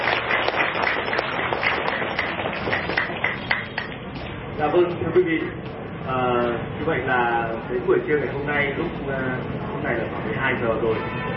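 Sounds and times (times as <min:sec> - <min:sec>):
crowd applauding: 0:00.0 - 0:04.0
speech: 0:04.6 - 0:11.3.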